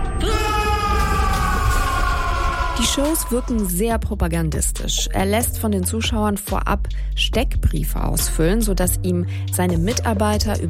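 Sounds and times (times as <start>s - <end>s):
audience screaming loudly together: 0.0s - 3.6s
speech: 2.8s - 10.6s.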